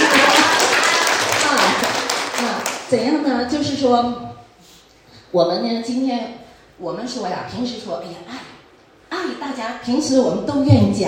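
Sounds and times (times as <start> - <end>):
church congregation clapping in praise of the Lord: 0.0 - 2.9
speech: 2.9 - 4.4, 5.3 - 11.0.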